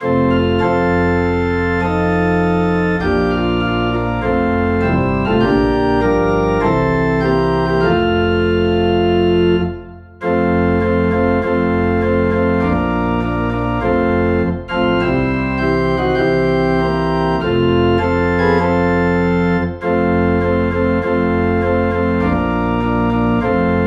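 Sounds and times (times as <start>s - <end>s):
low organ tone in F: 0.0s - 23.8s.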